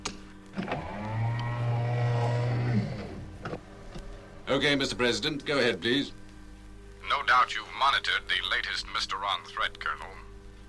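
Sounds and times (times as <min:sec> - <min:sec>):
motorized sound doors sliding closed: 0:00.5 - 0:04.4
speech: 0:04.5 - 0:06.2, 0:07.2 - 0:10.2.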